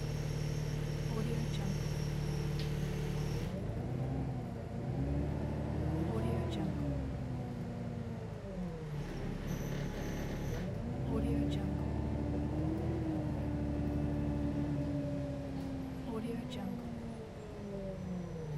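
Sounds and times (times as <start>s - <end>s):
moving bus interior ambience: 0.0s - 18.5s.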